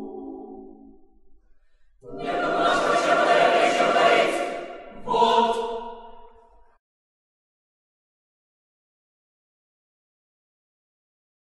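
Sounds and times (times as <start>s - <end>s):
chorus singing: 2.0s - 6.4s.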